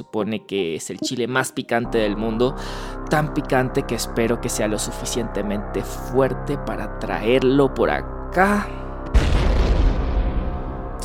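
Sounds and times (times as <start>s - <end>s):
speech: 0.0s - 8.8s
exploding head explosion effect: 9.1s - 11.0s.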